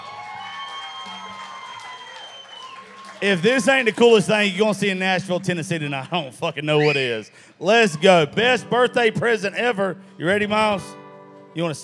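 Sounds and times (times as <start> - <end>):
large audience cheering and applause: 0.0 - 4.8
speech: 3.2 - 11.0, 11.6 - 11.8.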